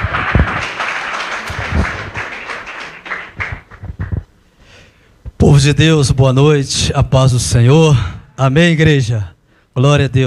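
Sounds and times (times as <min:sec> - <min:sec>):
audience applause: 0:00.0 - 0:04.2
speech: 0:05.6 - 0:10.2.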